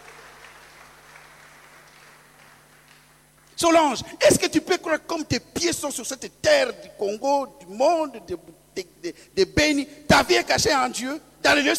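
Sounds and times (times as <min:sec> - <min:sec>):
audience applause: 0:00.0 - 0:03.1
speech: 0:03.6 - 0:11.7.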